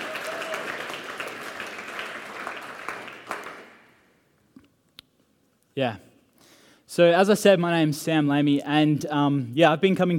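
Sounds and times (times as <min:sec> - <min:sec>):
round of applause: 0:00.0 - 0:04.0
speech: 0:05.8 - 0:06.1, 0:06.9 - 0:10.1.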